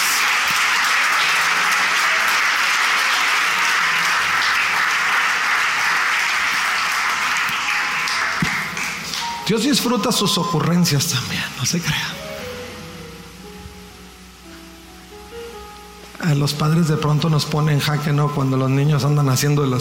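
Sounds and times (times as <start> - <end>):
audience applause: 0.0 - 9.5
speech: 9.5 - 12.2, 16.3 - 19.7.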